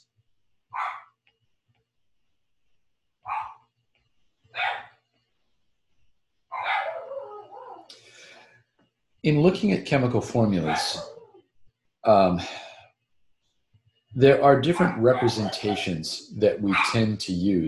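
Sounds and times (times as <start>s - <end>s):
dogs barking: 0.8s - 1.1s, 3.3s - 3.6s, 4.6s - 4.9s, 6.5s - 7.9s, 10.6s - 11.4s, 14.6s - 16.0s, 16.7s - 17.1s
speech: 9.2s - 11.1s, 12.0s - 12.7s, 14.2s - 17.6s.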